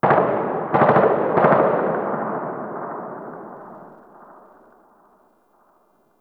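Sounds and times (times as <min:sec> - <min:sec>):
distant gunfire: 0:00.0 - 0:04.9.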